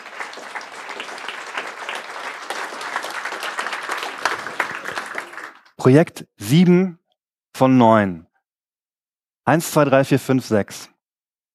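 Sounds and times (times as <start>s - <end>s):
audience applause: 0.0s - 5.8s
speech: 5.8s - 7.0s, 7.6s - 8.3s, 9.5s - 10.9s.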